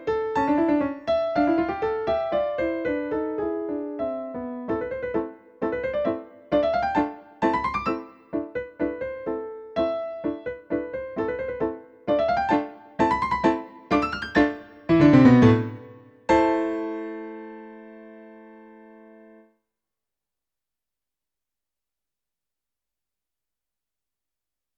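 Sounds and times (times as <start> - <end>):
arabesque on Yamaha NP-30 digital piano: 0.0 - 19.5.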